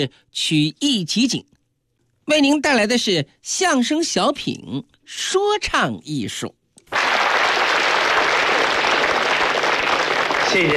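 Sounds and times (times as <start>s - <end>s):
speech: 0.0s - 1.5s, 2.3s - 7.0s, 10.5s - 10.7s
audience applause: 6.9s - 10.7s.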